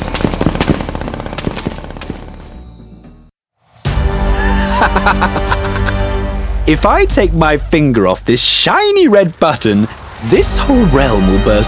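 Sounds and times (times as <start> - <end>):
machine-gun and rifle fire from a group shooting on command: 0.0 - 2.5
laughter: 4.3 - 6.0
speech: 4.8 - 5.8, 6.6 - 11.6.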